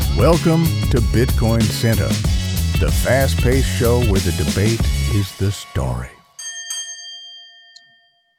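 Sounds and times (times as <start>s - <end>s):
speech: 0.2s - 6.2s
bright bell ringing: 6.2s - 8.3s.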